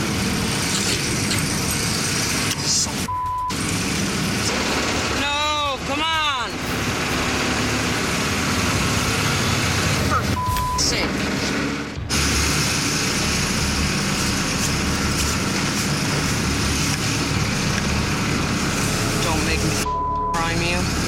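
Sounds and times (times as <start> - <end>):
pump pushing fuel through 92 feet of fuel line: 0.0 - 21.0.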